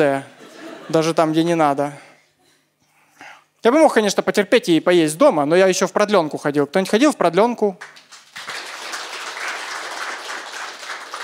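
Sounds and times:
speech: 0.0s - 0.3s, 0.9s - 2.0s, 3.6s - 8.0s
enthusiastic audience applause: 7.8s - 11.2s.

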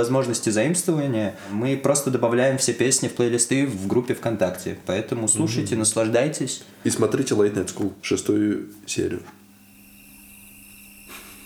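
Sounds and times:
speech: 0.0s - 9.4s
crickets chirping: 9.5s - 11.4s.

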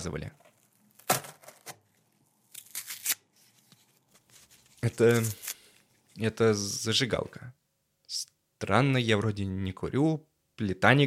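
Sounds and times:
speech: 0.0s - 0.4s, 4.8s - 5.4s, 6.2s - 11.0s
small parcel packaging tearing and crinkling: 0.6s - 3.4s, 4.3s - 5.8s.

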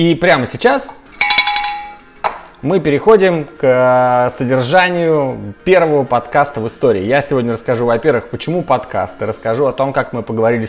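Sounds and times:
speech: 0.0s - 1.0s, 2.6s - 10.6s
small bell ringing: 1.2s - 2.0s.

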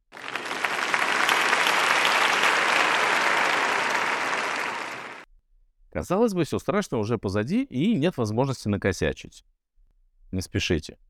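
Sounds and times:
audience applause: 0.0s - 5.2s
speech: 6.0s - 9.6s, 10.3s - 11.0s.

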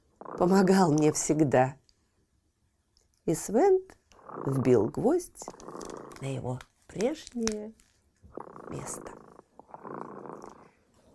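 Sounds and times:
cat purring: 0.0s - 1.4s, 3.7s - 7.3s, 8.2s - 11.1s
speech: 0.4s - 1.8s, 3.2s - 7.8s, 8.4s - 9.2s.

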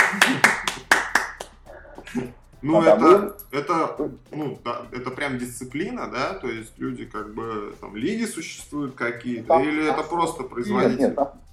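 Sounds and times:
laughter: 0.0s - 1.0s, 9.6s - 11.4s
hand claps for a contestant: 0.0s - 2.2s
speech: 2.2s - 11.5s.

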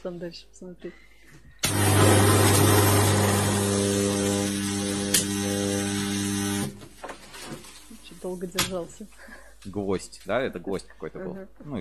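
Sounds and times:
speech: 0.0s - 2.0s, 8.2s - 11.8s
power tool cutting through a Chinese knife: 1.6s - 6.9s.

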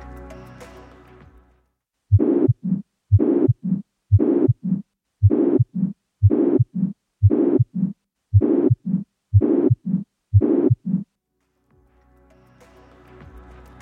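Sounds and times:
heartbeat with pansystolic murmur from ventricular septal defect: 2.1s - 11.1s.

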